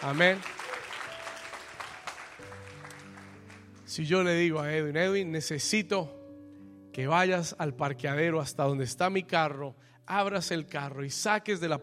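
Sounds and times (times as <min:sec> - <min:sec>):
speech: 0:00.0 - 0:00.6, 0:03.9 - 0:06.2, 0:07.0 - 0:11.8
audience clapping: 0:00.0 - 0:03.9
sustained keyboard chords: 0:00.0 - 0:09.4.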